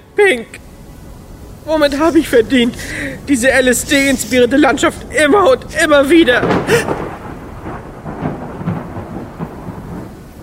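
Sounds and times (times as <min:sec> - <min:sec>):
speech: 0:00.2 - 0:00.7, 0:01.6 - 0:07.0
thunder of a thunderstorm: 0:06.2 - 0:10.4.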